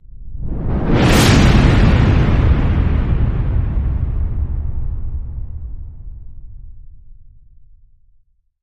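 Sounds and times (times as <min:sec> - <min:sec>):
whoosh: 0:00.3 - 0:07.0.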